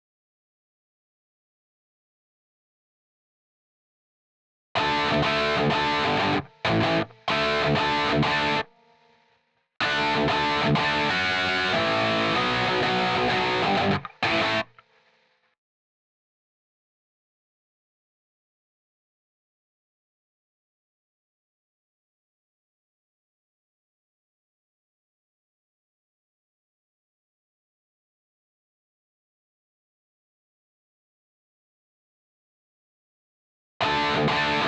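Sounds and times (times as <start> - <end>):
background guitar: 4.8 - 15.3, 33.8 - 34.6.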